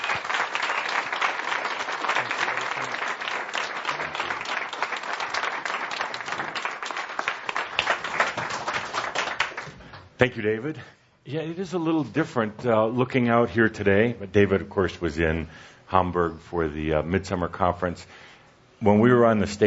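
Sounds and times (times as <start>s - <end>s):
audience applause: 0.0s - 9.9s
speech: 10.2s - 18.2s, 18.8s - 19.6s.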